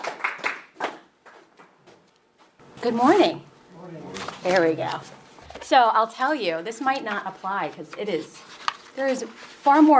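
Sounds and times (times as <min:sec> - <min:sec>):
audience clapping in welcome: 0:00.0 - 0:01.8
speech: 0:02.8 - 0:08.4, 0:09.0 - 0:09.9.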